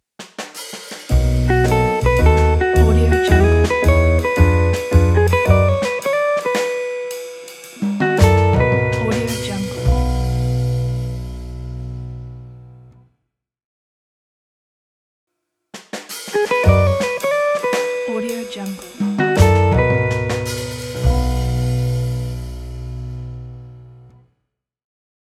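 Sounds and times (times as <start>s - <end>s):
jazz blues intro: 1.1s - 12.9s, 16.2s - 24.1s.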